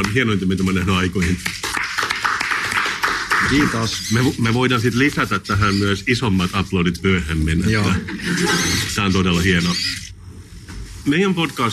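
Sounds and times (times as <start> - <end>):
speech: 0.0 - 1.7, 3.4 - 10.1, 11.1 - 11.7
hand clapping applause: 1.1 - 4.0.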